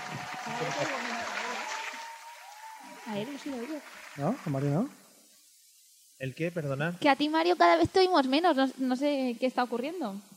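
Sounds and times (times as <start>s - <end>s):
applause: 0.0s - 5.0s
speech: 3.1s - 5.0s, 6.2s - 10.3s.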